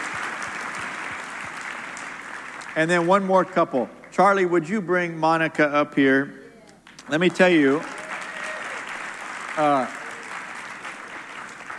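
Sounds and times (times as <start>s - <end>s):
audience clapping hands: 0.0s - 4.5s, 6.8s - 11.7s
speech: 2.8s - 6.4s, 7.1s - 8.0s, 9.6s - 10.0s.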